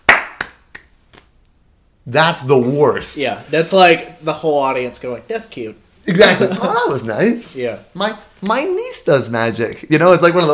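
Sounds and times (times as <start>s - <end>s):
short polite golf clap: 0.0s - 0.9s
speech: 2.0s - 10.5s
laughter: 6.1s - 7.1s.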